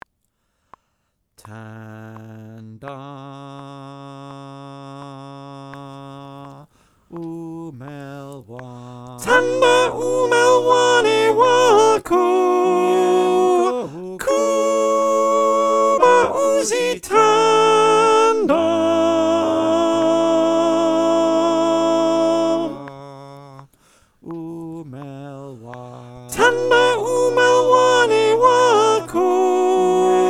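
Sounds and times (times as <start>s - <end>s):
choir with soprano: 7.3s - 23.7s, 24.3s - 30.2s.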